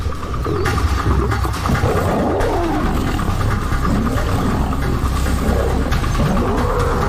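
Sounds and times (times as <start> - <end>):
male lions roaring while fighting: 0.0 - 7.0.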